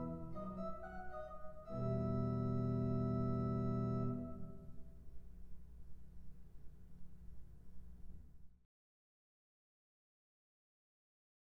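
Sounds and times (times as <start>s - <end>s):
organ: 0.0s - 4.9s.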